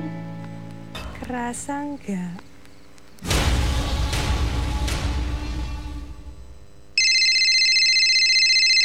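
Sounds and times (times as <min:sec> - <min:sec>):
speech: 0:01.3 - 0:02.5
long loud rushing noise: 0:03.2 - 0:06.7
electronic phone ringtone: 0:07.0 - 0:08.8.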